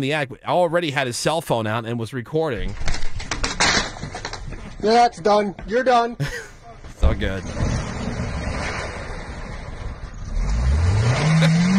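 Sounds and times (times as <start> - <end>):
speech: 0.0 - 3.0, 4.8 - 6.4, 7.2 - 7.6
car engine revving, stuck in snowbank: 7.2 - 11.7.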